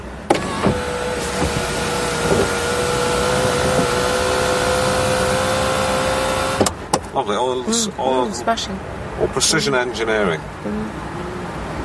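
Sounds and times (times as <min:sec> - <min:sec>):
automatic sunroof servo motors whirring: 0:00.3 - 0:06.7
speech: 0:07.2 - 0:11.1.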